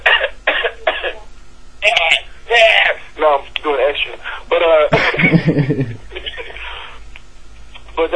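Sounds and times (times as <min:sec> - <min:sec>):
person choking in the middle of talking, coughing harshly: 0:00.0 - 0:01.3
speech: 0:02.0 - 0:06.0
laughter: 0:04.9 - 0:06.8.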